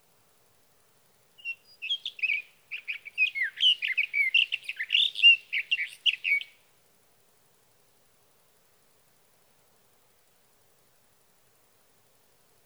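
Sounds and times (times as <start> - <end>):
sage thrasher song: 1.4 - 6.5.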